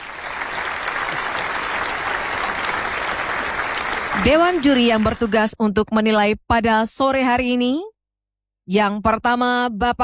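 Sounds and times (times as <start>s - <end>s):
audience applause: 0.0s - 5.4s
speech: 4.2s - 7.9s, 8.7s - 10.0s.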